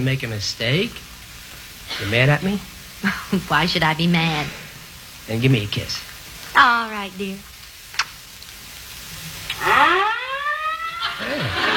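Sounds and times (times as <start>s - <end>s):
speech: 0.0s - 1.1s, 1.9s - 4.6s, 5.3s - 7.5s
laughter: 3.0s - 3.6s, 10.9s - 11.7s
fire engine sirens: 9.5s - 11.7s.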